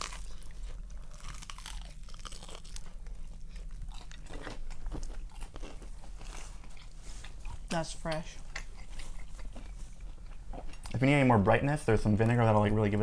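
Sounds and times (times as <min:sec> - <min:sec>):
crunching bite of chicken pesto mozzarella sandwich: 0:00.0 - 0:07.8, 0:08.4 - 0:11.0
speech: 0:07.8 - 0:08.4, 0:11.0 - 0:13.0.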